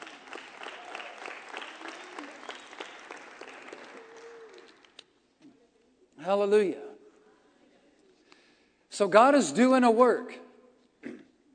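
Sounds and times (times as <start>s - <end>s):
audience applause: 0.0s - 5.0s
speech: 6.2s - 6.9s, 9.0s - 10.4s.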